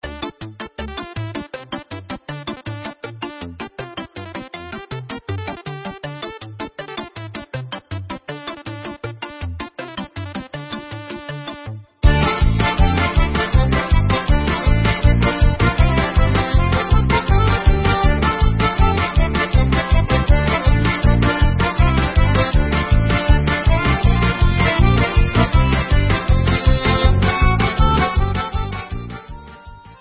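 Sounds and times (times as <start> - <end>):
instrumental hora music for Israeli dances: 10.2 - 29.9.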